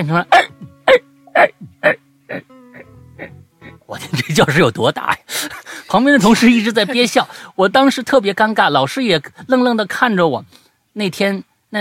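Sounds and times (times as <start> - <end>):
speech: 0.0 - 0.7, 4.3 - 5.2, 5.9 - 11.7
loud hiccups echoing in a classroom: 0.3 - 3.4.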